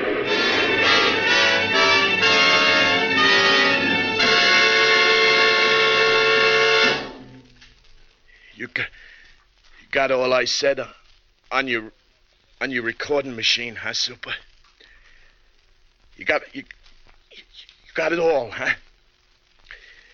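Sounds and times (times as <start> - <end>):
train horn blaring: 0.2 - 7.5
speech: 10.0 - 12.0, 12.6 - 14.5, 16.2 - 16.8, 17.4 - 18.8.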